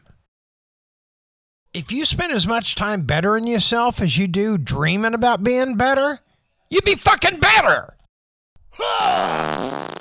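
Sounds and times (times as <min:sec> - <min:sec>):
speech: 0:01.8 - 0:08.0, 0:08.7 - 0:09.9
fart: 0:09.0 - 0:09.9.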